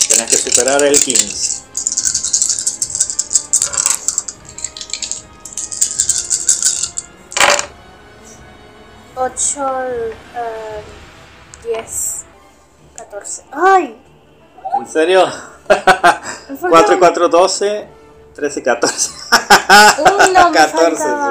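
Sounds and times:
dice being rolled: 0:00.0 - 0:07.7
speech: 0:00.4 - 0:01.6, 0:09.2 - 0:11.0, 0:11.6 - 0:12.0, 0:13.2 - 0:14.1, 0:14.8 - 0:21.2
laughter: 0:15.3 - 0:16.7, 0:18.8 - 0:21.0.

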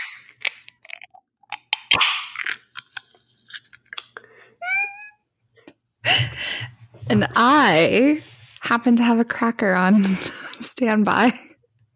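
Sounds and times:
can of soda water opening: 0:00.0 - 0:04.1
speech: 0:07.1 - 0:11.4.

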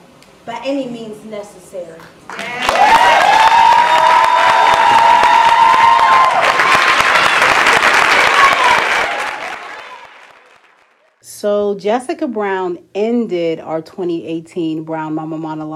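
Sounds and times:
speech: 0:00.4 - 0:03.0, 0:11.4 - 0:15.7
roaring applause from live audience: 0:02.3 - 0:11.2.

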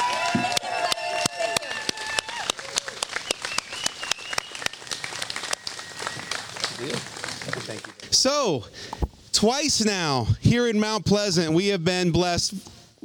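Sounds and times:
audience applause: 0:00.0 - 0:08.1
speech: 0:08.2 - 0:12.7.

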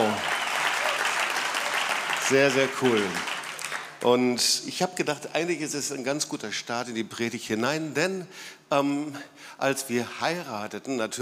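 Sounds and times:
applause: 0:00.0 - 0:04.2
speech: 0:02.3 - 0:03.3, 0:04.0 - 0:11.2.

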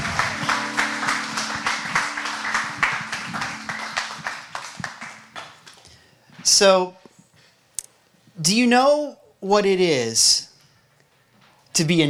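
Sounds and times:
audience applause: 0:00.0 - 0:05.8
speech: 0:06.6 - 0:07.0, 0:08.4 - 0:10.5, 0:11.7 - 0:12.0.

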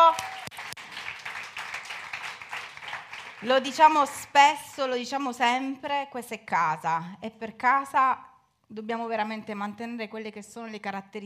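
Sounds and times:
welcome applause from audience: 0:00.0 - 0:03.9
speech: 0:03.4 - 0:11.2.

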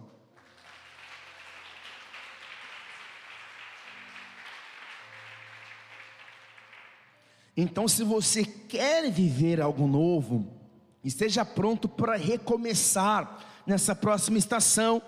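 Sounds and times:
audience applause: 0:00.0 - 0:07.3
speech: 0:07.6 - 0:15.0.

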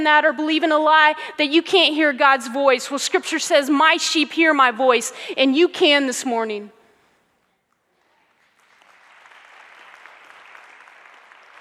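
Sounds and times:
speech: 0:00.0 - 0:06.8
faint audience clapping: 0:07.6 - 0:11.5.

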